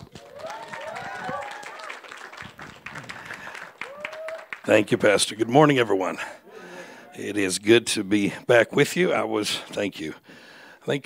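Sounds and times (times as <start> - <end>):
audience applause welcoming a speaker to a church stage: 0.0 - 5.1
speech: 4.7 - 6.4, 7.2 - 11.0.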